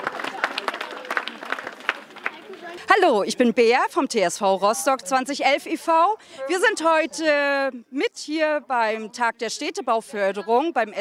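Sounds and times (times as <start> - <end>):
crowd applause for volunteers in Dürkow, Rostock: 0.0 - 2.9
speech: 2.9 - 10.9.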